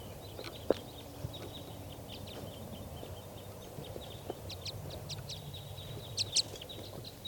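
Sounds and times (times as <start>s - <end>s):
flock of wild birds in trees chirping: 0.0s - 7.2s.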